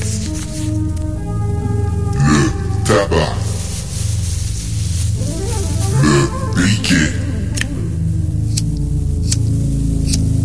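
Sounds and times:
rolling paper being handled: 0.0s - 0.8s, 2.7s - 6.6s
low humming tone: 0.0s - 10.4s.

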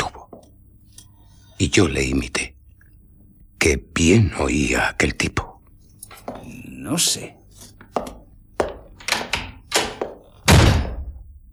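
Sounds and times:
speech: 1.6s - 2.5s, 3.7s - 5.5s, 6.8s - 7.4s
door slamming shut: 9.1s - 11.2s.

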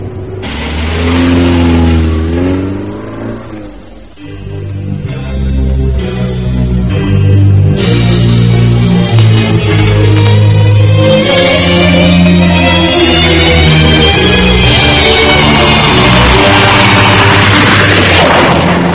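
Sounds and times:
car engine driving: 0.0s - 18.9s.

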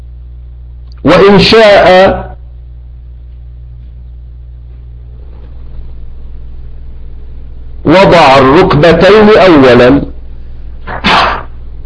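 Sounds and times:
low steady hum: 0.0s - 11.8s
speech: 1.0s - 2.3s, 7.9s - 10.1s
sneeze during a religious lesson: 10.8s - 11.6s.

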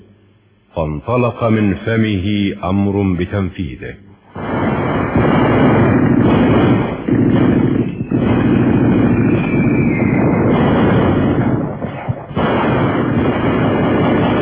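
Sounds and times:
speech: 0.8s - 4.1s
heavy artillery gunfire: 4.3s - 14.4s
warplanes roaring into the sky: 4.4s - 11.8s.

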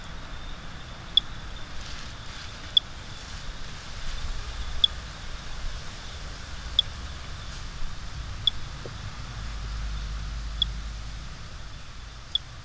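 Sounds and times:
Great Thrush chirping, Turdus fuscater, in Bogotá Colombia: 0.0s - 12.6s.

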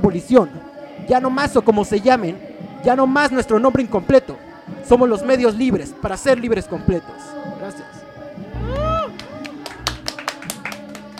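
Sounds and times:
speech: 0.0s - 7.9s
rising wavering whoop or whistle: 8.6s - 9.1s
scattered applause: 8.6s - 11.1s.

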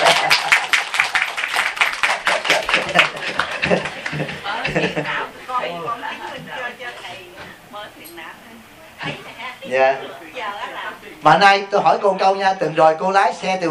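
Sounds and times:
laughter: 0.0s - 1.0s, 2.2s - 6.7s
audience applause: 0.0s - 5.1s
speech: 4.8s - 8.4s, 9.7s - 13.6s.

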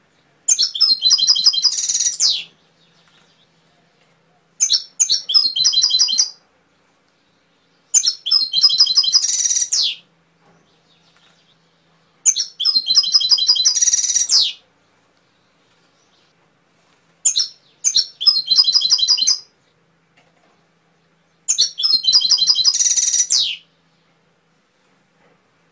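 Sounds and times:
canary singing trilled phrases: 0.5s - 2.5s, 4.6s - 6.4s, 7.9s - 10.0s, 12.3s - 14.6s, 17.3s - 19.5s, 21.5s - 23.7s.

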